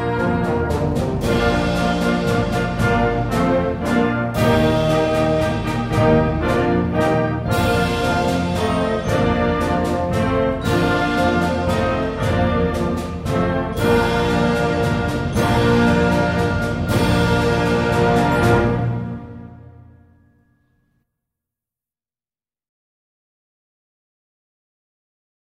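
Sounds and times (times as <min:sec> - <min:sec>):
minuet: 0:00.0 - 0:19.8
fanfare: 0:00.0 - 0:19.9.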